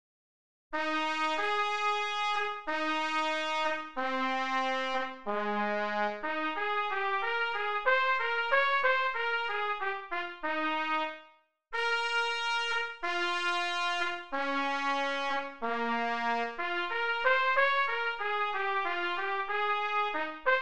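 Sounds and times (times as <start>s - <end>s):
trumpet: 0.8s - 20.5s.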